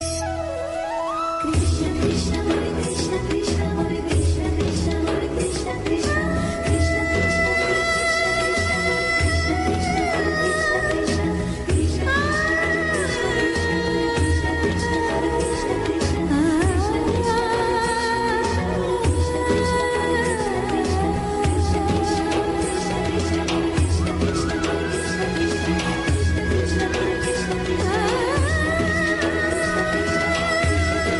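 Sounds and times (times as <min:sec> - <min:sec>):
instrumental music: 0:00.0 - 0:31.1.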